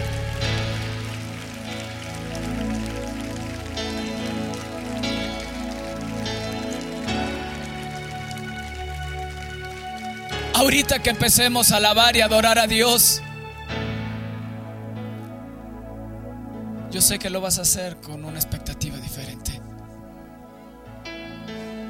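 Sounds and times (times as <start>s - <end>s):
audience applause: 0.0s - 12.9s
speech: 10.6s - 13.3s, 17.0s - 19.7s.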